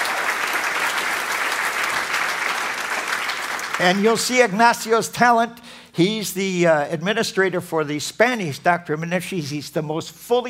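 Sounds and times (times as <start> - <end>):
audience round of applause: 0.0 - 4.4
speech: 3.8 - 10.4.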